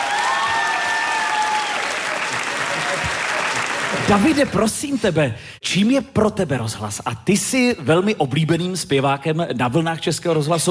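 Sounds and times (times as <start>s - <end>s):
audience applause: 0.0s - 5.0s
speech: 4.1s - 10.6s.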